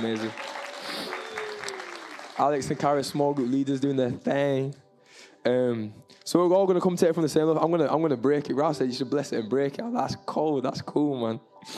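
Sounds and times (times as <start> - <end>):
speech: 0.0 - 0.5, 2.4 - 4.8, 5.4 - 11.7
applause from a group: 0.0 - 4.3.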